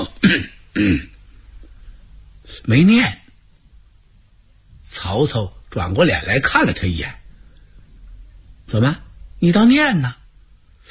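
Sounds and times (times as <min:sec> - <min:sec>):
speech: 0:00.0 - 0:01.1, 0:02.6 - 0:03.2, 0:05.0 - 0:07.2, 0:08.7 - 0:10.2
dry coughs or throat clearings by a voice acting out an official: 0:00.0 - 0:01.2.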